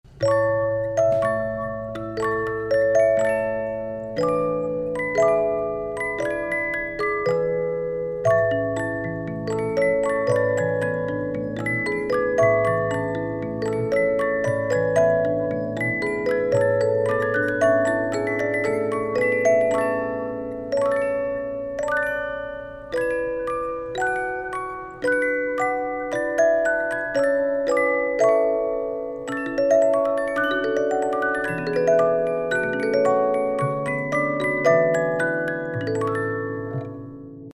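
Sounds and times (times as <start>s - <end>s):
music box melody: 0.1s - 37.5s.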